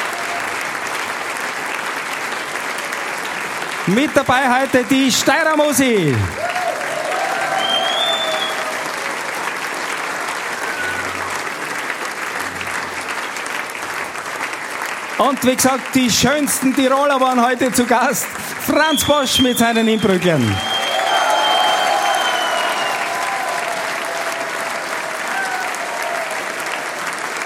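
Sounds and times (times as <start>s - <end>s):
audience applause: 0.0s - 27.4s
speech: 3.9s - 6.4s, 15.2s - 20.7s.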